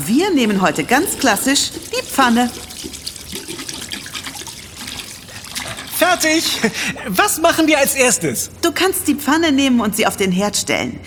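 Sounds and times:
tap water running into a sink: 0.0s - 6.8s
hands washing: 0.0s - 7.0s
speech: 0.1s - 3.0s, 6.0s - 11.0s.

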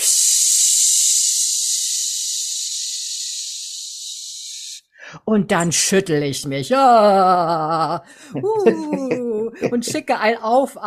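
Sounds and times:
voice imitating air hissing out of a released valve: 0.0s - 4.9s
speech: 5.3s - 10.8s
laughter: 8.3s - 10.1s.

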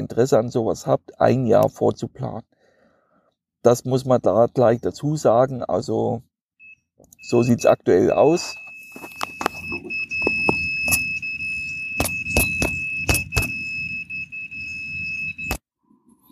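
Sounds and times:
speech: 0.1s - 2.5s, 3.6s - 6.3s, 7.0s - 9.1s
carp-rod bite alarm electronic beep: 6.6s - 15.6s
knocks and clicks: 9.0s - 11.0s, 11.9s - 13.6s.

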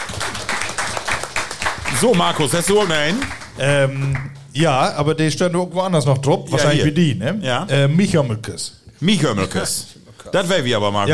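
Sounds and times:
audience applause: 0.0s - 4.4s
speech: 2.0s - 11.1s.

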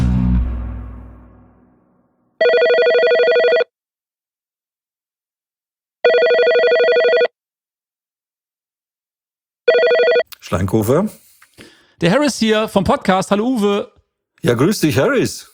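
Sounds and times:
telephone ringing for an outgoing call: 2.4s - 3.7s, 6.0s - 7.3s, 9.7s - 10.3s
speech: 10.5s - 15.5s.

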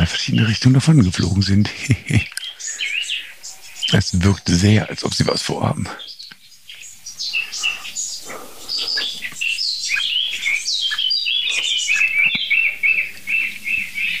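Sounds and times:
laughter: 0.0s - 2.4s
Meise calling: 0.0s - 6.2s, 7.1s - 13.5s
Amsel calling: 0.0s - 14.1s
speech: 0.2s - 2.3s, 3.9s - 6.1s.

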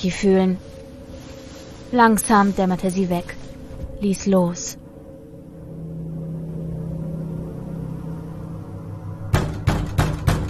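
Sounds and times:
speech: 0.0s - 0.8s, 1.9s - 3.4s, 4.0s - 4.8s
pounding on an apartment door: 9.3s - 10.4s.

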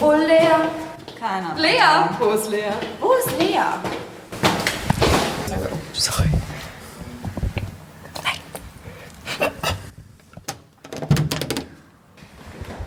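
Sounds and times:
speech: 0.0s - 4.0s, 5.5s - 6.5s
footsteps approaching: 0.0s - 9.9s.

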